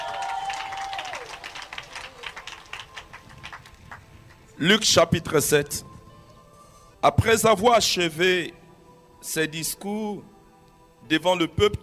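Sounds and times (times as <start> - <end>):
church congregation clapping: 0.0 - 4.6
speech: 4.6 - 5.9, 7.0 - 8.6, 9.2 - 10.3, 11.0 - 11.8.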